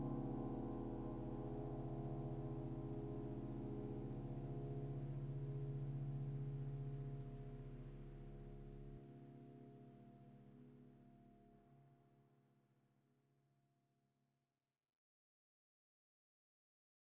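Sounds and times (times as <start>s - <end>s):
piano music: 0.0s - 10.3s.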